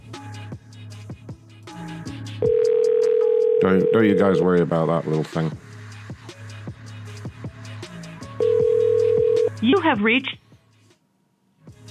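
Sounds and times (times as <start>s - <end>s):
telephone dial tone for an outgoing call: 2.5s - 4.2s, 8.4s - 9.6s
speech: 3.6s - 5.7s, 9.6s - 10.4s.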